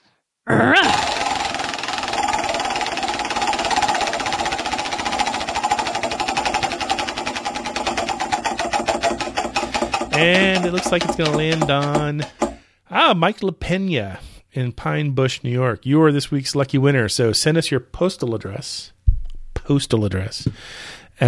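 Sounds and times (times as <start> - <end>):
speech: 0.5 - 0.9, 10.2 - 19.0, 19.7 - 21.2
prize wheel pointer clicking: 0.9 - 12.6.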